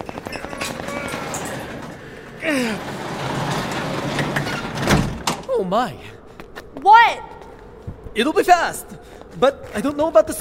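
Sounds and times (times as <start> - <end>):
garage door being hauled open: 0.1 - 5.5
speech: 2.4 - 3.0, 5.6 - 6.2, 6.8 - 7.3, 8.2 - 10.3.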